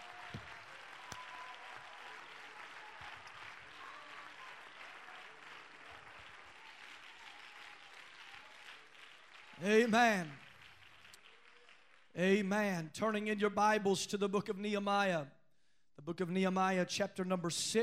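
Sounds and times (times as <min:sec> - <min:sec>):
audience clapping hands: 0:00.0 - 0:12.9
speech: 0:09.6 - 0:10.4, 0:12.2 - 0:15.4, 0:16.0 - 0:17.8.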